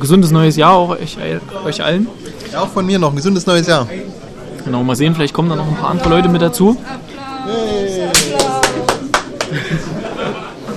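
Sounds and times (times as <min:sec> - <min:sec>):
speech: 0:00.0 - 0:07.8
laughter: 0:06.0 - 0:10.7
spontaneous applause: 0:08.1 - 0:09.7.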